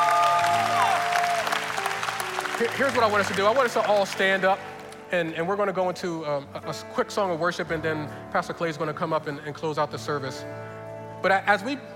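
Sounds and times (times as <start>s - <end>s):
audience applauding: 0.0s - 5.1s
speech: 2.6s - 10.6s, 11.2s - 11.9s.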